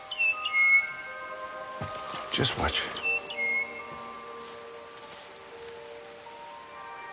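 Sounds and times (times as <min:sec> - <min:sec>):
rare bird whistling calls: 0:00.0 - 0:01.2, 0:02.9 - 0:03.9
speech: 0:02.4 - 0:03.1.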